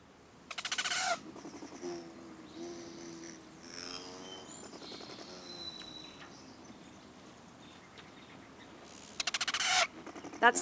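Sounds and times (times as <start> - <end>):
rufous hummingbird chattering chirps: 0.6 - 6.9, 8.6 - 10.5.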